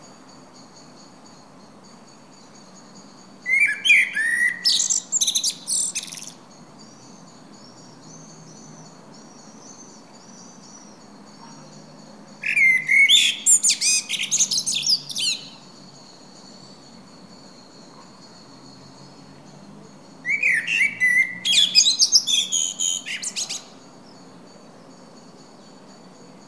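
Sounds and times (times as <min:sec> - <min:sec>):
common blackbird singing: 0:03.4 - 0:16.9, 0:20.2 - 0:23.8.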